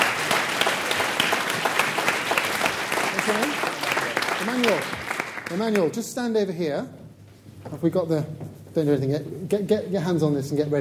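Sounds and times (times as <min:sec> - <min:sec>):
audience applause: 0:00.0 - 0:06.0
speech: 0:04.6 - 0:07.0, 0:07.6 - 0:10.7.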